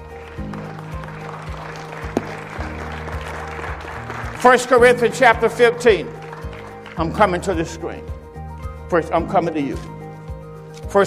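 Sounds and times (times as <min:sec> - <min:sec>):
audience clapping: 0:00.0 - 0:07.8
sustained low keyboard chords pulsing: 0:00.0 - 0:11.0
speech: 0:04.4 - 0:06.2, 0:07.0 - 0:08.1, 0:08.9 - 0:09.9.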